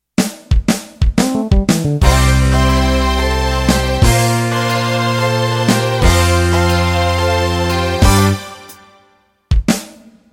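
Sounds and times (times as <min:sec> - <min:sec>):
country shuffle music: 0:01.0 - 0:08.6.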